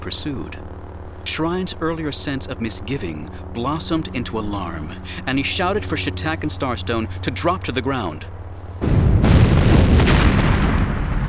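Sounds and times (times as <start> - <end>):
speech: 0.1 - 9.0
series of concussive detonations in a street: 8.8 - 11.2.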